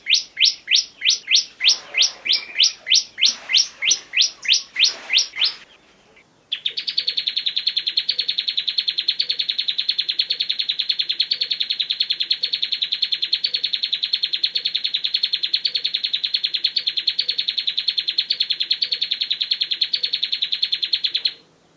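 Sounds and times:
bar-winged prinia song of fast high buzzy chirps: 0:00.0 - 0:21.7.

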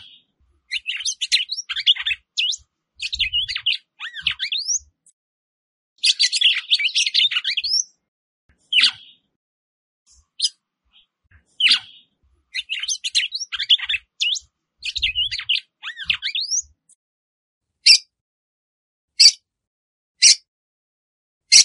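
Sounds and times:
Red-cowled Cardinal song: 0:00.0 - 0:05.2, 0:06.0 - 0:09.3, 0:10.1 - 0:16.8, 0:17.8 - 0:18.1, 0:19.2 - 0:19.4, 0:20.2 - 0:20.5.

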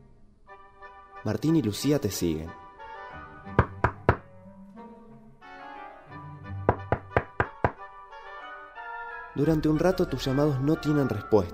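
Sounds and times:
speech: 0:01.2 - 0:02.6, 0:09.4 - 0:11.5
knocking on a wooden cabin door: 0:03.6 - 0:04.3, 0:06.7 - 0:07.8.

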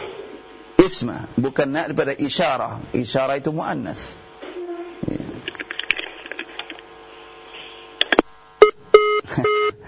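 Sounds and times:
speech: 0:00.9 - 0:04.2
crackly, garbled telephone line: 0:05.4 - 0:07.3
disconnected phone call electronic beeps: 0:08.7 - 0:09.7.

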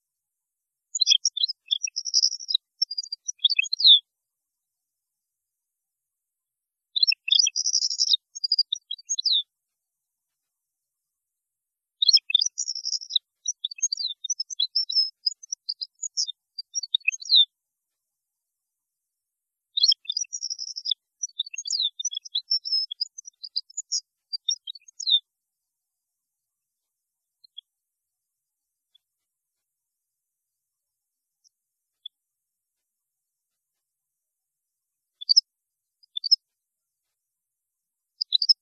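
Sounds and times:
European goldfinch twittering song: 0:00.9 - 0:04.0, 0:07.0 - 0:09.4, 0:12.0 - 0:17.5, 0:19.8 - 0:25.2, 0:35.2 - 0:35.4, 0:36.1 - 0:36.4, 0:38.2 - 0:38.6.

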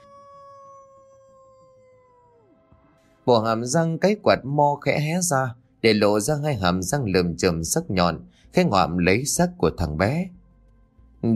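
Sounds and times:
dog howling mournfully: 0:00.0 - 0:03.4
speech: 0:03.3 - 0:10.4.

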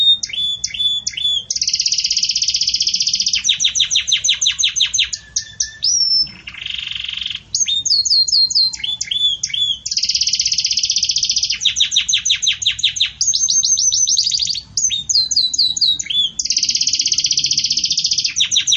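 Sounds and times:
Belgian canary singing trills: 0:00.0 - 0:18.7.

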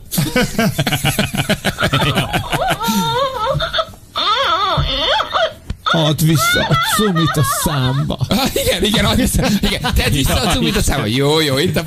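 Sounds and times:
laughter: 0:00.1 - 0:04.0, 0:06.3 - 0:11.8
speech: 0:00.2 - 0:02.2, 0:06.0 - 0:11.8
baby crying: 0:02.0 - 0:07.8.

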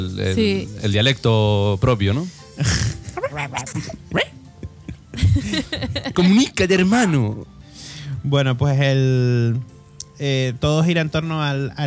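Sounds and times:
speech: 0:00.0 - 0:04.3, 0:05.4 - 0:07.5, 0:08.2 - 0:11.8
laughter: 0:02.6 - 0:06.4
dog barking: 0:03.2 - 0:04.4.

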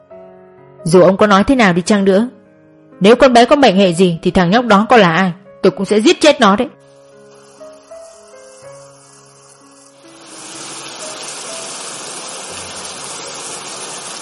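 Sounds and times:
speech: 0:00.8 - 0:02.4, 0:03.0 - 0:06.8
heavy rain: 0:10.1 - 0:14.2.

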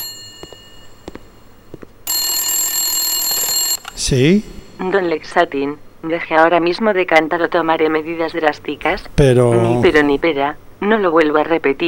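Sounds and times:
telephone ringing: 0:00.0 - 0:04.1
speech: 0:04.0 - 0:11.8.

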